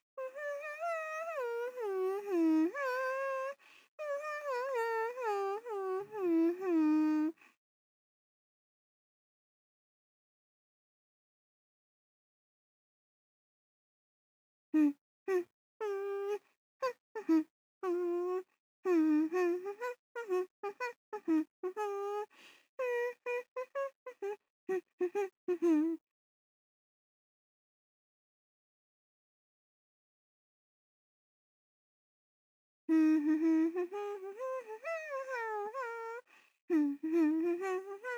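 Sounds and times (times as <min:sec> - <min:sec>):
person humming: 0:00.2 - 0:07.4, 0:14.8 - 0:26.0, 0:32.9 - 0:38.1.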